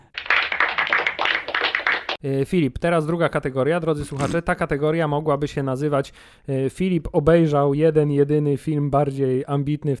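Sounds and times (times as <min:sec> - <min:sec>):
hand clapping: 0:00.0 - 0:02.2
speech: 0:02.2 - 0:09.9.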